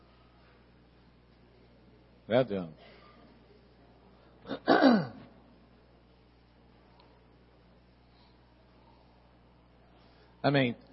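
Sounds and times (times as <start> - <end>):
speech: 2.3 - 2.9, 10.4 - 10.9
throat clearing: 4.4 - 5.3.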